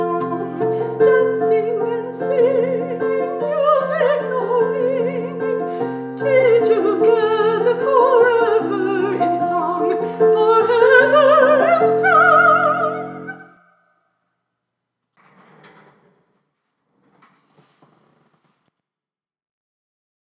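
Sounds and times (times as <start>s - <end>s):
soprano singing: 0.0s - 13.6s.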